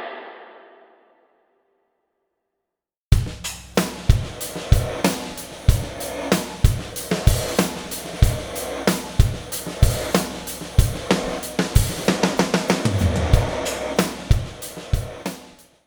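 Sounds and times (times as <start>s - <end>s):
convolution reverb impulse responses: 3.1s - 15.6s.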